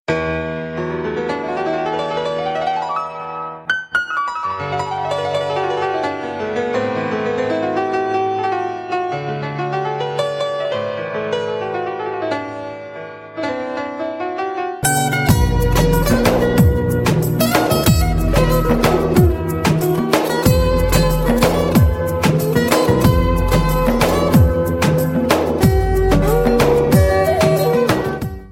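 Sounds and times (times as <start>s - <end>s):
romantic love music: 0.3s - 28.5s.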